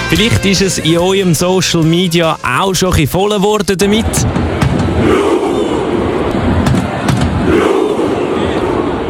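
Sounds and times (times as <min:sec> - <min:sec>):
speech: 0:00.1 - 0:05.2
Norwegian football fans at the World Cup roaring and chanting: 0:04.0 - 0:09.0.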